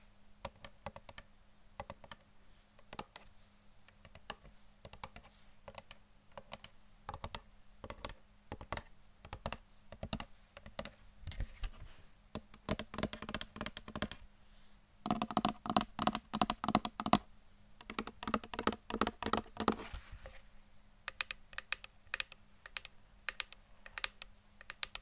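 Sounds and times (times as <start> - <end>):
fingers tapping like on a keyboard: 0.4 - 1.3, 1.8 - 2.2, 2.8 - 3.3, 3.9 - 10.9, 12.3 - 14.2, 15.0 - 17.2, 17.8 - 19.9, 21.1 - 25.0.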